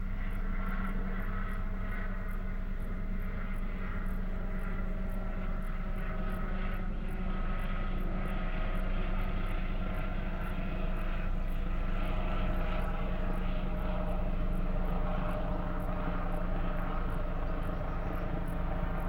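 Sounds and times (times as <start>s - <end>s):
deep engine drone in the country: 0.0s - 19.0s.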